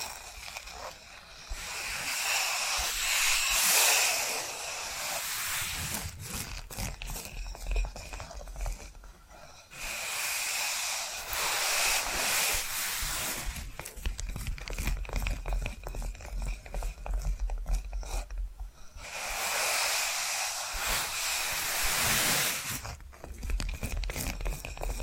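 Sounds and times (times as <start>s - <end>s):
bright hissy scratching: 0.0s - 25.0s.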